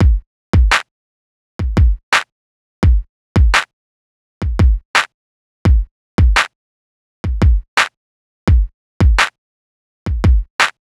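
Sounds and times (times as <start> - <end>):
hip hop drum beat: 0.0 - 0.8, 1.6 - 2.0, 2.8 - 3.7, 4.4 - 4.8, 5.7 - 6.5, 7.2 - 7.7, 8.5 - 9.3, 10.1 - 10.8.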